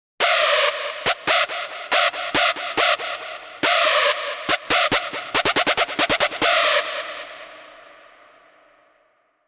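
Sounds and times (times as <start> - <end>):
Sylenth1 hard techno synth screech: 0.2 - 7.5.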